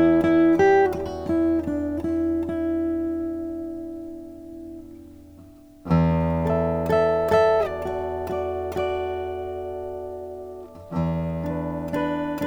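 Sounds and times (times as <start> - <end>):
Strahm Eros wild birdseye maple guitars: 0.0 - 12.4.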